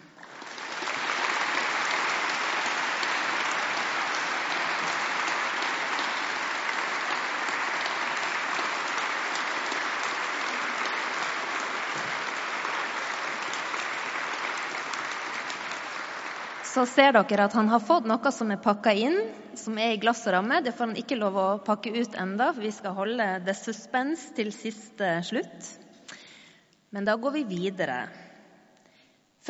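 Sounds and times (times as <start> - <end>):
warm audience applause: 0.0 - 16.8
speech: 16.8 - 25.8, 26.9 - 28.2.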